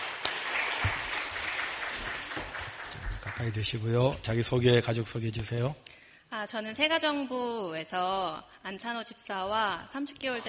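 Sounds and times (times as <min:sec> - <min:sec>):
audience applause: 0:00.0 - 0:04.0
speech: 0:03.4 - 0:10.4.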